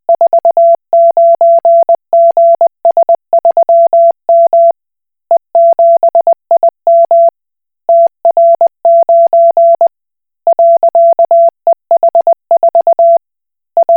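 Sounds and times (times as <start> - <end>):
Koch Morse code beeps: 0.1 - 4.7, 5.6 - 7.3, 7.9 - 9.9, 10.5 - 13.2.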